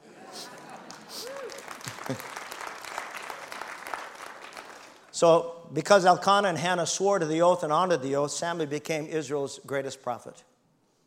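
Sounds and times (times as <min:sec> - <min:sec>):
laughter: 0:00.0 - 0:02.5
audience applause: 0:00.0 - 0:05.1
speech: 0:02.1 - 0:02.3, 0:05.2 - 0:10.5.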